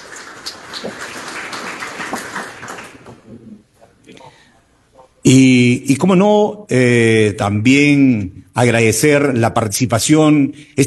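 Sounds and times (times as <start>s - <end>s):
audience applause: 0.0s - 3.4s
speech: 5.3s - 10.8s.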